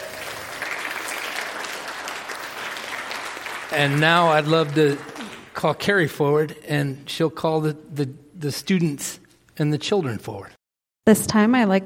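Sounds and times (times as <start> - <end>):
audience applause: 0.0 - 5.6
speech: 3.7 - 11.8.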